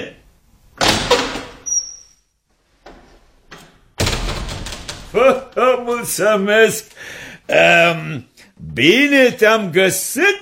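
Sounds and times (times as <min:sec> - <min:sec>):
wooden door being opened, rattling and scraping: 0:04.0 - 0:06.2
speech: 0:05.1 - 0:10.4.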